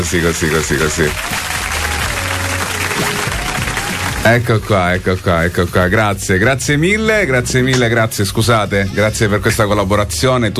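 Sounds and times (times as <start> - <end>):
speech: 0.0 - 1.6, 4.2 - 10.5
audience clapping in a live TV studio: 0.0 - 5.6.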